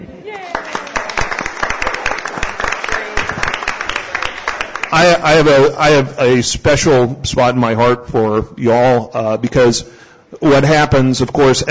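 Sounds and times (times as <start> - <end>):
audience applause: 0.4 - 5.3
speech: 4.9 - 11.7.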